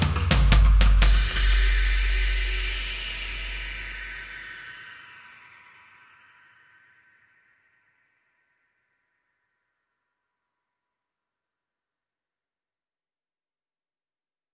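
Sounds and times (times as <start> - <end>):
drums only mix: 0.0 - 3.4.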